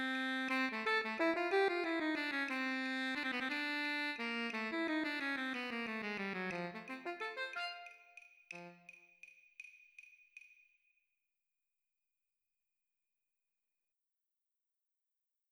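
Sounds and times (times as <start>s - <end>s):
alto and baritone saxophone play-along at 60 BPM: 0.0s - 8.9s.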